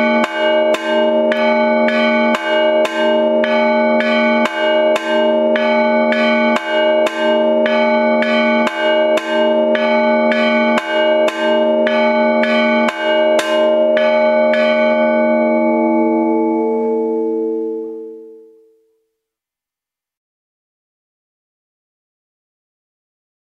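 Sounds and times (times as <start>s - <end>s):
bells ringing: 0.0s - 18.6s.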